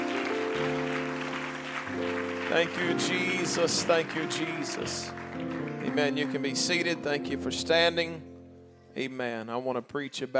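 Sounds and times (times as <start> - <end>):
crowd clapping hands: 0.0 - 7.4
sustained organ-like chords: 0.0 - 10.2
speech: 2.5 - 8.3, 9.0 - 10.3.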